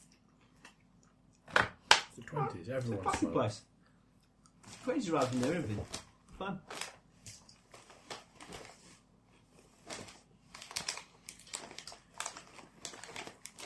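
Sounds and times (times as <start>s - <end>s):
speech: 2.2s - 3.7s, 4.8s - 6.8s
crisps packet crinkling: 4.6s - 8.8s, 9.8s - 13.6s.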